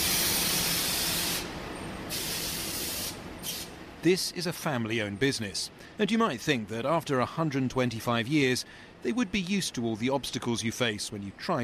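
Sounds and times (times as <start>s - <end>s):
paper mill machinery hissing: 0.0s - 3.8s
speech: 4.0s - 11.6s.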